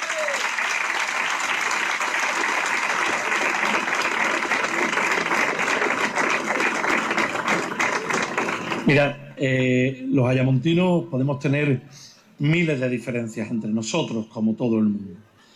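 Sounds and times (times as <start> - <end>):
audience applause: 0.0 - 9.0
speech: 8.9 - 15.3.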